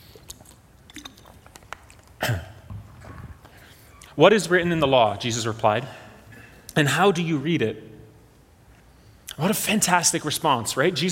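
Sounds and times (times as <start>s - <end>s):
person sipping water: 0.0s - 4.2s
speech: 4.2s - 6.0s, 6.8s - 7.9s, 9.4s - 11.1s.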